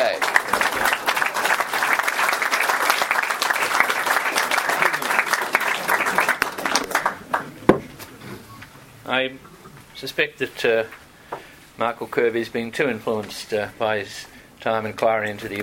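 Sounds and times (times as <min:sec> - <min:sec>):
audience applause: 0:00.0 - 0:08.2
speech: 0:09.2 - 0:09.4, 0:10.0 - 0:11.0, 0:11.8 - 0:15.6.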